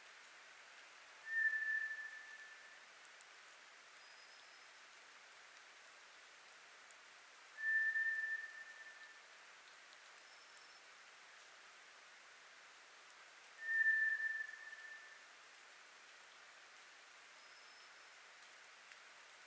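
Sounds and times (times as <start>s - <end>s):
White's thrush whistling: 1.3s - 2.6s, 7.6s - 9.1s, 13.6s - 15.2s.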